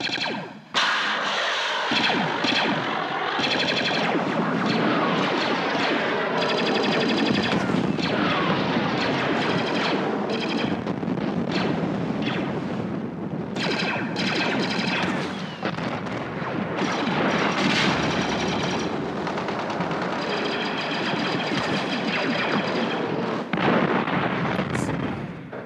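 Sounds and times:
rapid gunfire: 0:00.0 - 0:13.0, 0:13.6 - 0:25.6
booming explosions in a sci-fi battle effect: 0:00.0 - 0:25.6.

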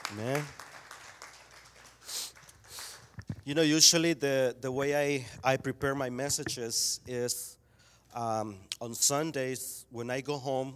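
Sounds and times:
audience applause: 0:00.0 - 0:03.3
speech: 0:00.1 - 0:00.6, 0:03.5 - 0:10.7.

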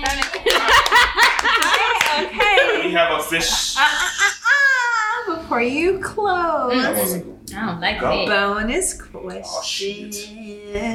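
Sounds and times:
hands clapping: 0:00.0 - 0:02.3
laughter: 0:00.0 - 0:05.3
speech: 0:03.2 - 0:04.4, 0:05.5 - 0:10.9.

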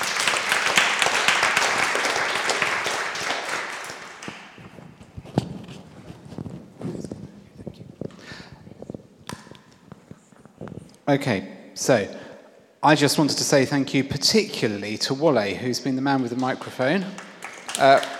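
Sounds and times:
audience round of applause: 0:00.0 - 0:04.7, 0:17.2 - 0:18.1
footsteps and shuffles: 0:04.4 - 0:11.0
speech: 0:11.1 - 0:12.2, 0:12.8 - 0:18.1.

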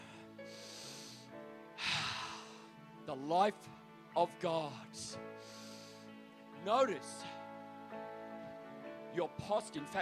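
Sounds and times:
slow deep inhaled breath: 0:00.0 - 0:02.8, 0:05.3 - 0:06.2
faint sustained music: 0:00.0 - 0:09.9
speech: 0:03.1 - 0:05.3, 0:06.6 - 0:07.4, 0:09.2 - 0:09.9.

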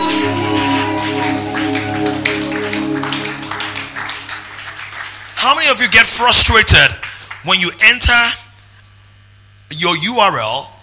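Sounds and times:
audience clapping hands: 0:00.0 - 0:08.0
speech: 0:05.5 - 0:08.4, 0:09.7 - 0:10.8.

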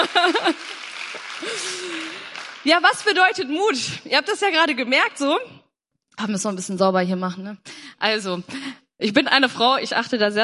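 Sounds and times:
laughter: 0:00.0 - 0:02.3
audience applause: 0:00.0 - 0:03.4
speech: 0:02.6 - 0:05.6, 0:06.2 - 0:10.4.

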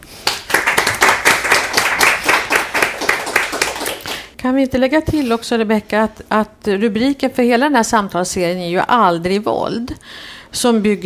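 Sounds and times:
audience applause: 0:00.2 - 0:04.3
speech: 0:04.4 - 0:11.0.

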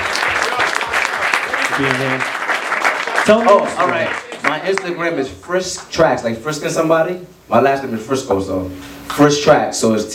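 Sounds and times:
audience clapping: 0:00.0 - 0:05.9
speech: 0:01.8 - 0:02.4, 0:03.2 - 0:10.1.

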